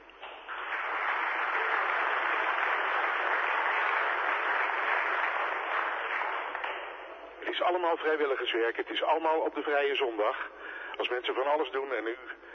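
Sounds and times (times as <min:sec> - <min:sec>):
crowd applause: 0:00.0 - 0:07.4
speech: 0:07.6 - 0:12.5.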